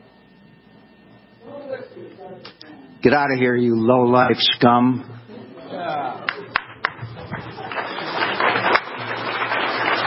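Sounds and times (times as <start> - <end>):
speech: 1.9 - 5.2
scattered clapping: 6.3 - 10.0.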